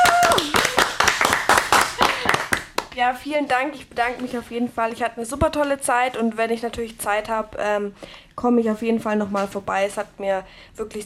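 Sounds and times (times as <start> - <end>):
audience applause as a thank-you at a farewell: 0.0 - 2.8
speech: 3.0 - 11.0.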